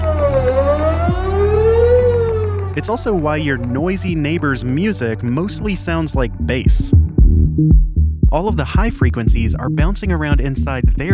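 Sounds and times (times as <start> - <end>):
sweeping tornado siren: 0.0 - 3.9
speech: 2.8 - 7.0, 7.6 - 11.1.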